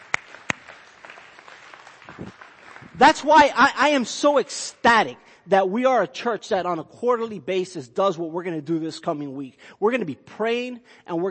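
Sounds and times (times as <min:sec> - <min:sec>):
audience clapping: 0:00.0 - 0:04.0
speech: 0:02.2 - 0:11.3.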